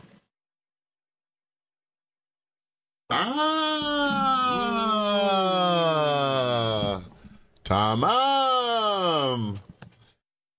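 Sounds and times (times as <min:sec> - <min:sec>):
person yelling aah: 0:03.1 - 0:07.1, 0:08.0 - 0:09.5.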